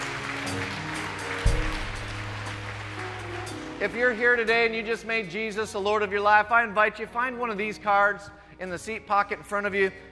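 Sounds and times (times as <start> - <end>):
audience clapping: 0.0 - 4.5
speech: 3.8 - 10.1.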